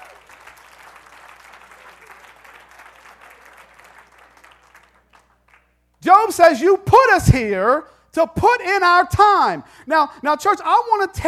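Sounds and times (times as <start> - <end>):
crowd clapping: 0.0 - 5.8
speech: 6.0 - 11.2.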